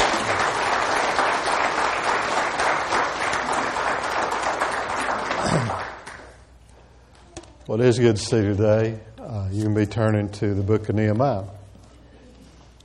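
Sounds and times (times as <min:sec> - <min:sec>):
crowd applauding: 0:00.0 - 0:06.4
speech: 0:07.7 - 0:11.6.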